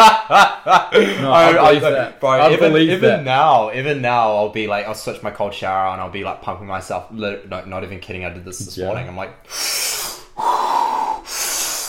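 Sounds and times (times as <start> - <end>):
laughter: 0.0 - 3.3
speech: 0.1 - 11.5
massive deep breaths: 9.4 - 11.8.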